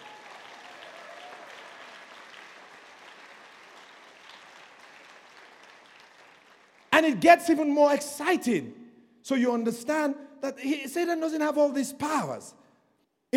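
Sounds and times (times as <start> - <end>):
audience applause: 0.0 - 7.0
speech: 7.0 - 12.6.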